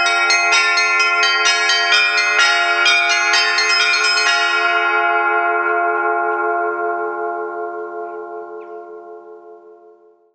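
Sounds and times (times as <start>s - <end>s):
bell ringing: 0.0s - 7.4s.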